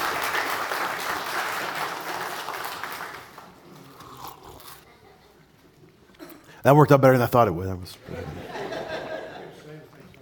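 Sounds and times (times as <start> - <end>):
crowd applauding: 0.0 - 3.6
speech: 6.6 - 8.6
laughter: 8.0 - 10.1.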